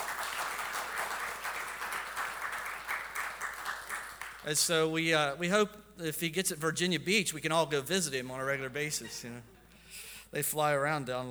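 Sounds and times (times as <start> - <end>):
crowd clapping: 0.0 - 5.0
speech: 4.4 - 9.6, 10.3 - 11.2.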